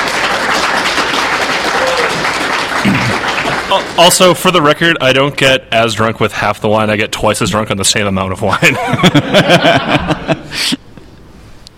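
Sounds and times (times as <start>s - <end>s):
audience applause: 0.0s - 4.5s
speech: 3.7s - 10.8s
laughter: 8.5s - 10.8s.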